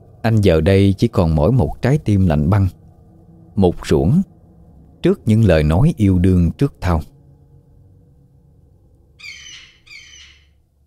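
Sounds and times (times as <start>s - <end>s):
low rumble: 0.0s - 10.8s
speech: 0.2s - 2.8s, 3.6s - 4.3s, 5.0s - 7.1s
seagulls squawking: 9.2s - 10.5s.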